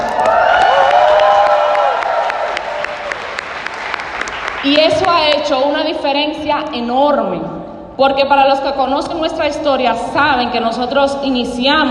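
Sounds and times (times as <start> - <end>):
audience applause: 0.0 - 4.9
speech: 4.6 - 11.8.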